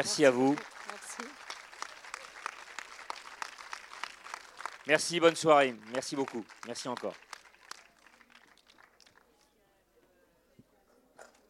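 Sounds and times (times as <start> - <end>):
speech: 0.0 - 1.4, 4.9 - 7.3
audience applauding guests: 0.0 - 9.3.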